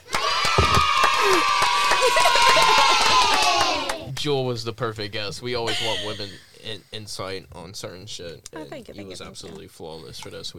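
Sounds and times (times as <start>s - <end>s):
crowd applauding: 0.0s - 4.3s
laughter: 1.2s - 4.3s, 5.6s - 7.0s
speech: 4.2s - 10.5s.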